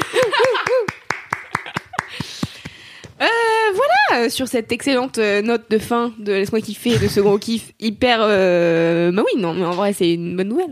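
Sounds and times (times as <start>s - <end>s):
hand clapping into a microphone: 0.0s - 3.2s
speech: 4.2s - 10.7s.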